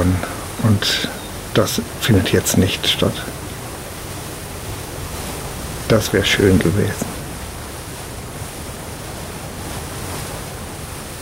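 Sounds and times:
speech: 0.0s - 3.4s, 5.9s - 7.1s
sea waves and spray washing over a sailing ship's deck: 0.0s - 11.2s.

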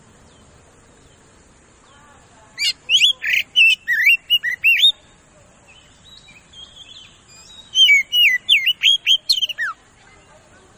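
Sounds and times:
Oriental magpie-robin singing fast loud whistled lure song: 2.6s - 5.0s, 5.8s - 9.8s.

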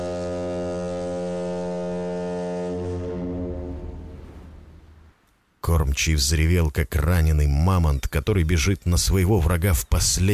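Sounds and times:
submarine horn blasting over the foggy sea: 0.0s - 5.2s
speech: 5.6s - 10.3s.

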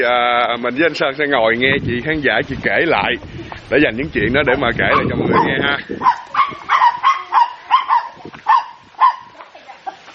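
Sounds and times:
speech: 0.0s - 6.5s
dog barking excitedly: 4.5s - 9.4s.

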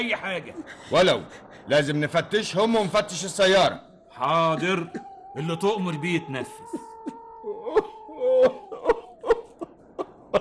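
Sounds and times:
speech: 0.0s - 6.8s
man sobbing in a radio drama: 4.3s - 10.3s.

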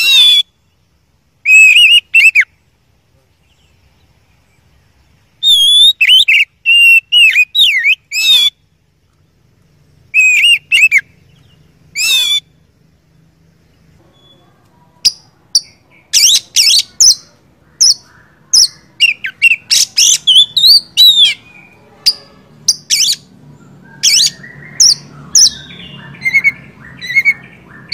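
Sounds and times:
Oriental magpie-robin whistling and chirping: 0.0s - 0.8s, 1.4s - 2.6s, 5.3s - 8.8s, 10.1s - 12.7s, 14.0s - 27.9s.

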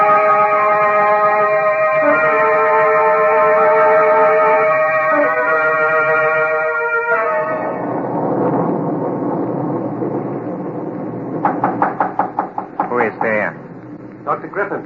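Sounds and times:
steady rumbling hum: 0.0s - 14.8s
knocking on a door: 11.4s - 13.5s.

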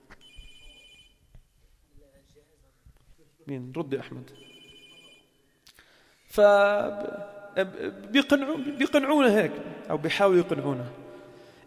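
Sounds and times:
telephone ringing with a bright electronic trill: 0.2s - 1.2s, 4.4s - 5.4s
speech: 3.2s - 4.5s, 6.4s - 11.0s.

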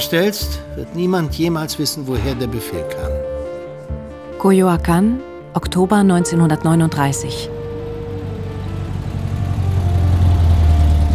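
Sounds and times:
speech: 0.0s - 3.3s, 4.4s - 7.6s
car engine idling in Coyoacán: 6.2s - 11.1s.

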